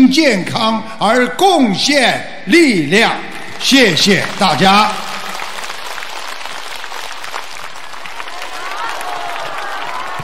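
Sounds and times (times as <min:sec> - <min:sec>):
speech: 0:00.1 - 0:05.1
audience applause: 0:03.3 - 0:10.2.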